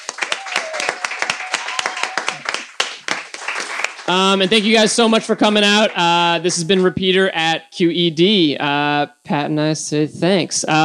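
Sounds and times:
audience applause: 0.0s - 6.3s
speech: 4.1s - 10.8s.

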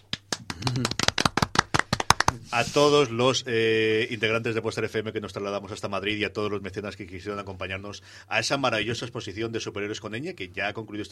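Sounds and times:
one person clapping hands: 0.0s - 2.4s
speech: 0.7s - 1.0s, 2.5s - 11.1s.

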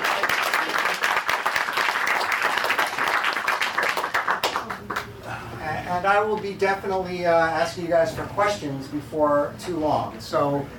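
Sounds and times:
crowd applauding for panelist: 0.0s - 5.1s
speech: 6.0s - 10.7s.

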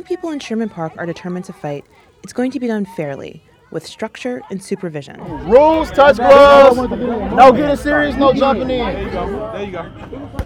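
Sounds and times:
crowd chatter at outdoor boxing gathering: 0.0s - 10.4s
speech: 0.0s - 10.4s.

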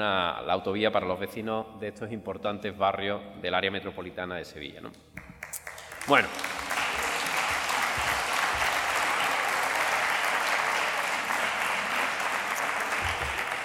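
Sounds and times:
speech: 0.0s - 5.2s, 6.0s - 6.5s
audience applause: 5.4s - 13.6s.

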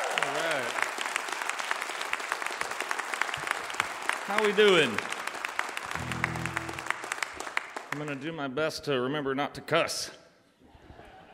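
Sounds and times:
audience applause welcoming a singer-songwriter onto Mountain Stage: 0.0s - 8.0s
speech: 4.3s - 5.1s, 8.0s - 10.2s.

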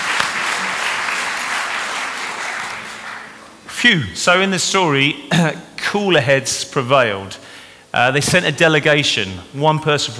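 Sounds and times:
audience applause: 0.0s - 3.6s
speech: 3.8s - 10.1s.

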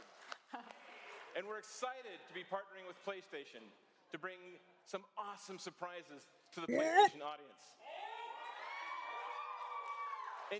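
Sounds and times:
speech: 1.4s - 7.8s
high shouted voices: 6.7s - 7.1s
crowd cheering and whooping at a video game presentation: 7.9s - 10.5s.

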